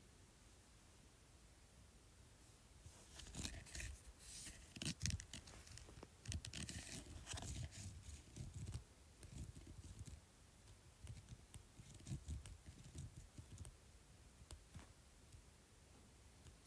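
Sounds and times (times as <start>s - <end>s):
quiet hiss: 0.0s - 16.6s
scratching on a bumpy surface: 3.0s - 10.2s, 11.0s - 13.7s.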